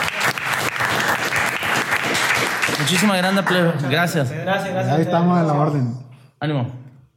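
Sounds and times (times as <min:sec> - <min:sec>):
audience applause: 0:00.0 - 0:04.2
speech: 0:02.9 - 0:06.8.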